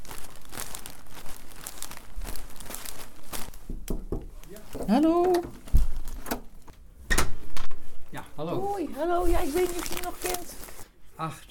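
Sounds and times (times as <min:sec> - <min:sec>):
tulip bouquet wrapping crinkling: 0:00.0 - 0:06.8, 0:08.5 - 0:10.9
speech: 0:04.9 - 0:05.6, 0:08.8 - 0:11.5.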